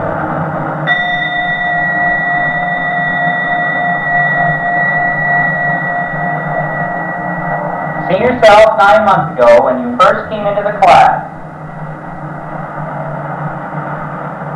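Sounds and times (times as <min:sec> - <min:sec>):
bell being rung: 0:00.9 - 0:11.4
speech: 0:08.1 - 0:11.2.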